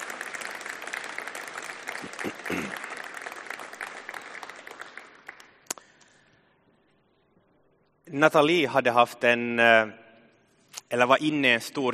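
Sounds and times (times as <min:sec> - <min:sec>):
audience applause: 0:00.0 - 0:05.6
speech: 0:02.0 - 0:02.8, 0:08.1 - 0:10.0, 0:10.9 - 0:11.9.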